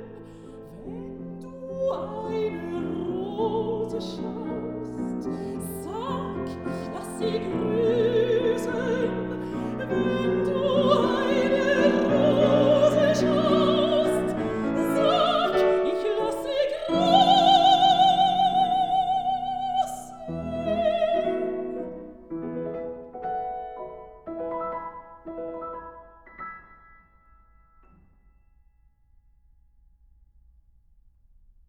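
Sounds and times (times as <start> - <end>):
person singing: 0.0 - 22.0
piano: 0.0 - 31.0.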